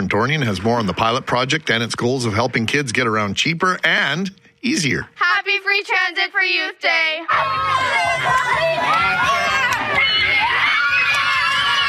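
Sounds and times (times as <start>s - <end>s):
speech: 0.0s - 9.7s
Selkirk students cheering to welcome the provincial premier in Manitoba: 7.3s - 11.8s.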